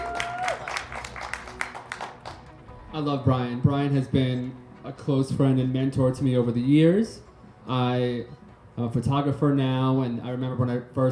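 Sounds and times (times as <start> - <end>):
audience cheering: 0.0 - 1.6
audience applause: 0.0 - 2.5
speech: 3.0 - 11.1.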